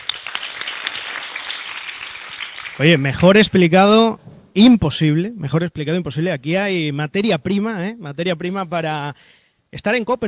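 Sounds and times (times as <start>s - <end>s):
applause: 0.0s - 3.6s
speech: 2.8s - 10.2s.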